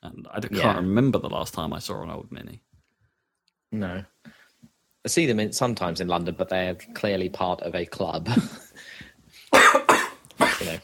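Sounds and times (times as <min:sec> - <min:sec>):
speech: 0:00.3 - 0:02.7, 0:03.7 - 0:04.4, 0:05.0 - 0:09.7
person coughing after beer went down the wrong way: 0:09.6 - 0:10.8.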